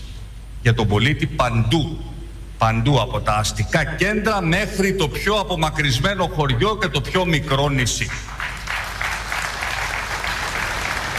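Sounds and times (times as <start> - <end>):
speech: 0.6 - 8.3
sparse limited applause after speech: 8.3 - 11.1.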